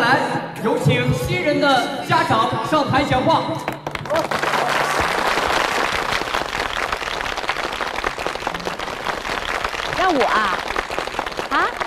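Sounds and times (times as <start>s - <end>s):
speech: 0.2s - 4.4s, 10.1s - 10.6s
audience applause: 3.8s - 11.8s.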